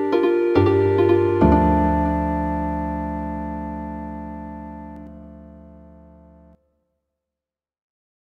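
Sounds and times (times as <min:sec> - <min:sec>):
healing harp music: 0:00.0 - 0:06.6.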